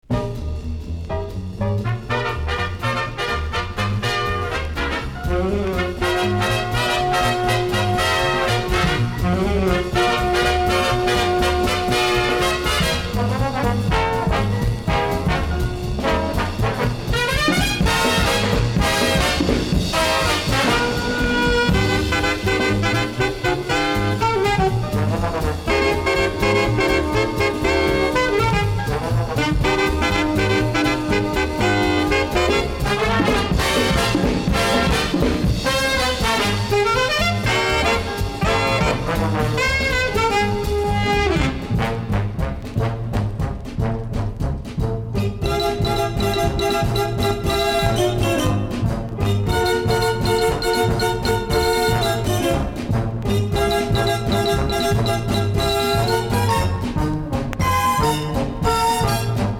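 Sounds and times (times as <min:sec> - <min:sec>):
instrumental music: 0:00.0 - 0:59.5.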